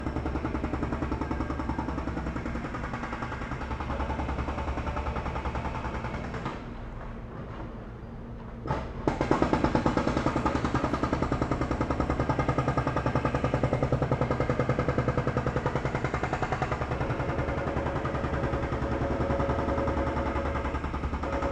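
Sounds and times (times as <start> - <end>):
hydraulic jackhammer at a street construction site: 0.0 - 7.0, 8.7 - 21.5.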